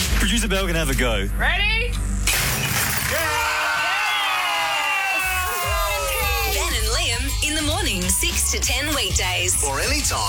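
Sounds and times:
speech: 0.2s - 2.1s, 7.5s - 10.2s
glass bottle smashing at a christening: 2.3s - 3.4s
people whooping and cheering: 3.1s - 10.2s.

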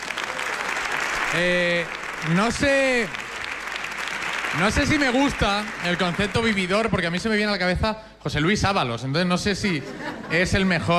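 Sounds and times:
applause: 0.0s - 7.3s
speech: 1.3s - 3.2s, 4.5s - 10.9s.

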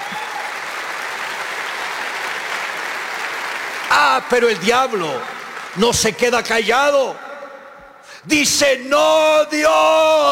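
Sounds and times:
audience applause: 0.0s - 6.3s
speech: 4.1s - 7.2s, 8.2s - 10.2s.

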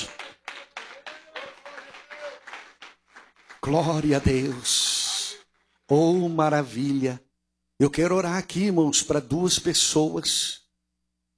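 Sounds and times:
audience applause: 0.0s - 5.5s
speech: 3.6s - 4.8s, 5.9s - 10.6s.

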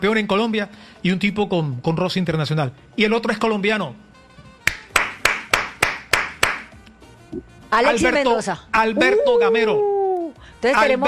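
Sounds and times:
speech: 0.0s - 4.1s, 7.7s - 9.9s, 10.6s - 11.0s
hands clapping: 4.6s - 6.9s.

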